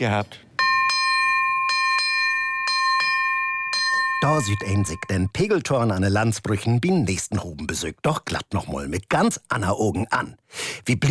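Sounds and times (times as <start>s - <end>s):
speech: 0.0s - 0.5s, 4.2s - 11.0s
ship's bell ringing: 0.6s - 5.4s.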